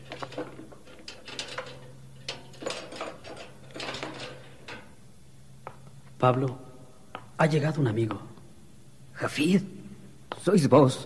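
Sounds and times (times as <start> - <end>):
heavy dungeon door being opened with metallic clanks: 0.0 - 5.0
low steady hum: 0.0 - 11.0
speech: 6.2 - 6.7, 7.4 - 8.3, 9.2 - 9.8, 10.4 - 11.0.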